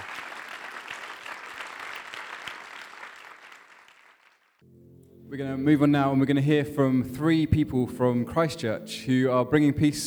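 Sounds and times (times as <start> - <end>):
audience applause: 0.0 - 4.6
speech: 5.3 - 10.0.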